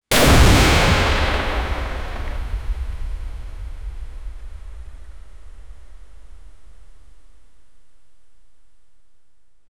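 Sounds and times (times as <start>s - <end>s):
nuclear blast: 0.1s - 7.2s.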